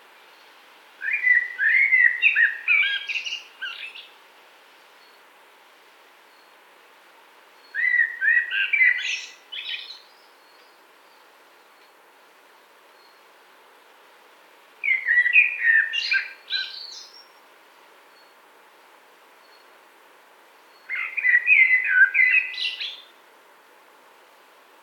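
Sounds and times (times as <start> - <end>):
common blackbird singing: 1.0 - 4.1, 7.6 - 10.7, 14.8 - 17.3, 20.7 - 23.1.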